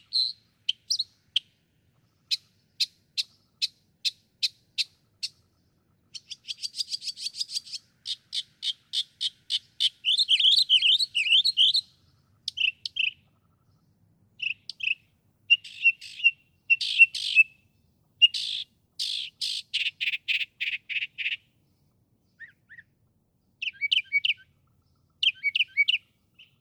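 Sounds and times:
northern mockingbird song: 0.0s - 26.5s.

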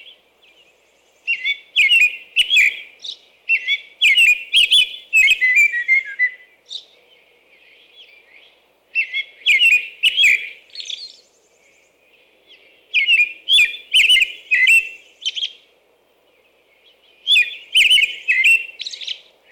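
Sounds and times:
American robin whistled phrases: 1.3s - 2.9s, 3.5s - 6.5s, 9.0s - 11.1s, 13.0s - 15.5s, 17.3s - 19.2s.

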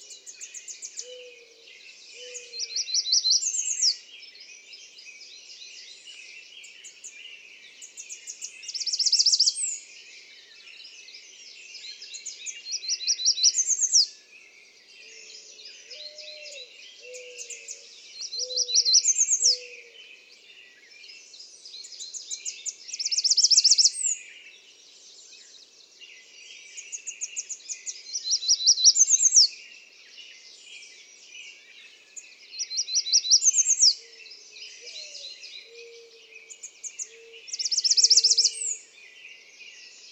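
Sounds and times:
American redstart: 0.0s - 40.1s.

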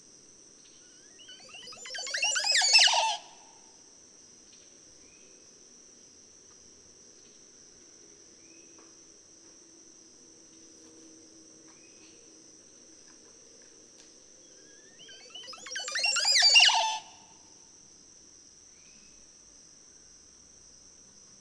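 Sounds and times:
Montezuma oropendola calling: 1.2s - 3.4s, 15.0s - 17.2s.

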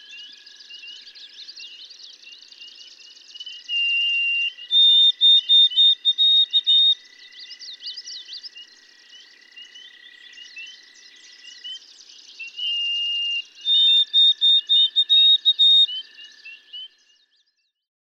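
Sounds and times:
white-throated sparrow singing pure whistles: 3.4s - 7.0s, 12.4s - 16.0s.

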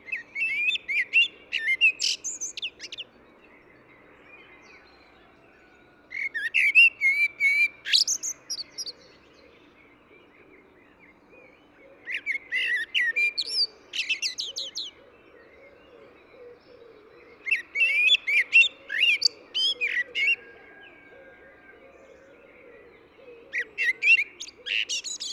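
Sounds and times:
Eurasian blackbird singing: 0.0s - 25.3s.

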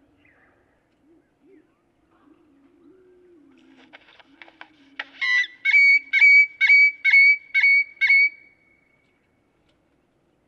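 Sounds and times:
great-tailed grackle whistling calls: 4.4s - 9.2s.

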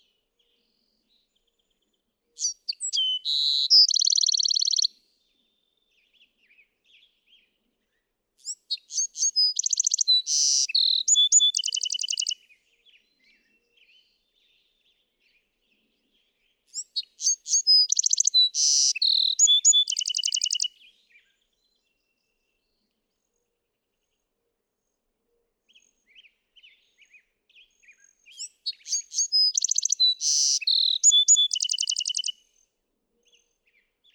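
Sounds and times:
Bewick's wren song: 2.4s - 4.9s, 8.4s - 12.4s, 16.7s - 20.8s, 27.6s - 32.5s.

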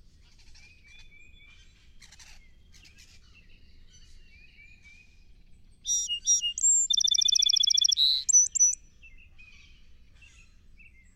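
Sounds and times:
song sparrow song: 5.8s - 8.8s.

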